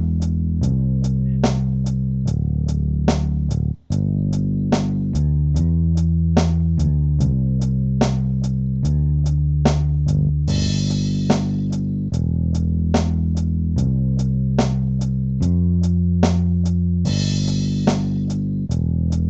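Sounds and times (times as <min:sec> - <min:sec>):
bass: 0:00.0 - 0:19.2
drums: 0:00.0 - 0:19.2.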